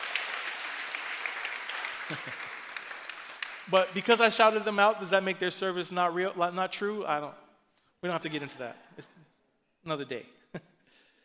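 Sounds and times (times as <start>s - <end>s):
audience clapping: 0.0s - 4.8s
speech: 2.1s - 2.5s, 3.7s - 7.4s, 8.0s - 9.2s, 9.8s - 10.7s.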